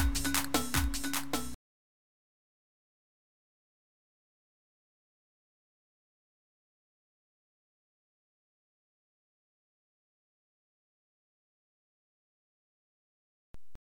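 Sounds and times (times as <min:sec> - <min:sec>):
zarb percussion rhythm: 0:00.0 - 0:01.6.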